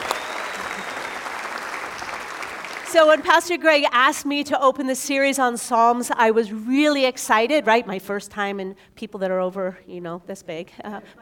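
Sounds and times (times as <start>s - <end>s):
church congregation applauding a new preacher: 0.0s - 3.4s
speech: 2.9s - 11.1s.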